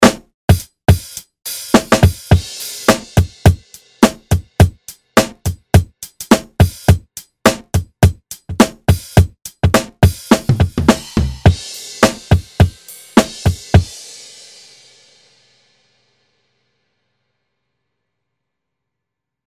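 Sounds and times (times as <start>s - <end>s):
groove music: 0.0s - 14.0s.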